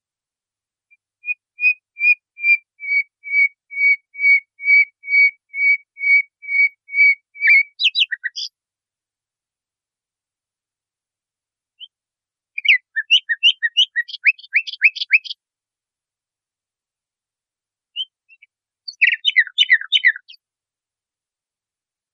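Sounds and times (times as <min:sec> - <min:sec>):
nightingale song on a training recording for cage birds: 0:00.9 - 0:08.5, 0:11.8 - 0:12.0, 0:12.6 - 0:15.4, 0:18.0 - 0:20.4.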